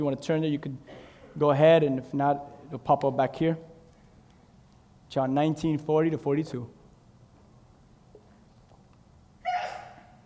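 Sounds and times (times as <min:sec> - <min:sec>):
speech: 0:00.0 - 0:03.7, 0:05.1 - 0:06.8
sneeze: 0:09.4 - 0:10.2.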